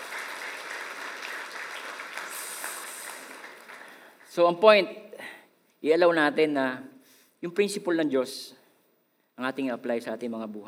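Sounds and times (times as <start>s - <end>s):
church congregation applauding during a sermon: 0.0s - 4.6s
speech: 4.4s - 8.6s, 9.4s - 10.6s.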